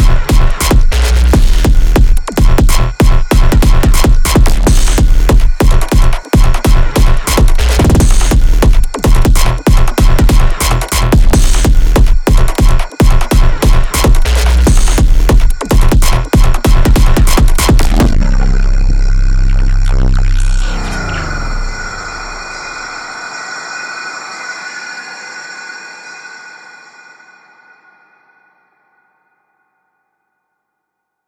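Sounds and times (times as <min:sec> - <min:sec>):
deconstructed glitch sample sounds: 0:00.0 - 0:23.2.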